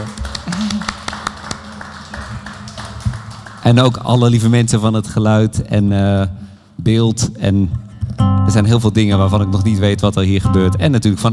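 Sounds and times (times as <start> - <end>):
scattered audience claps: 0.0 - 4.4
speech: 3.6 - 11.3.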